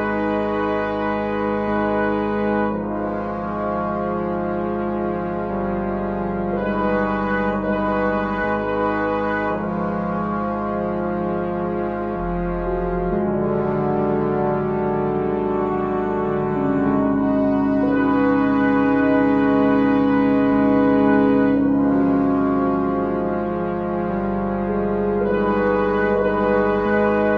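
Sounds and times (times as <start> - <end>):
brass instruments holding chords: 0.0 - 27.3.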